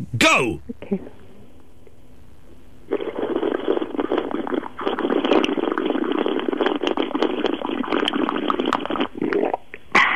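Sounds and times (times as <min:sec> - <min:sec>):
speech: 0:00.2 - 0:01.1
person slurping Earl Grey tea: 0:02.9 - 0:10.1.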